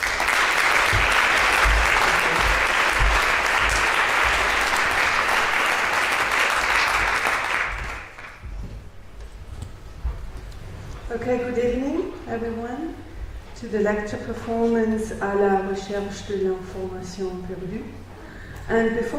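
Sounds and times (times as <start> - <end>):
crowd applauding: 0.0 - 8.4
speech: 11.2 - 13.0, 13.6 - 18.0, 18.7 - 19.1.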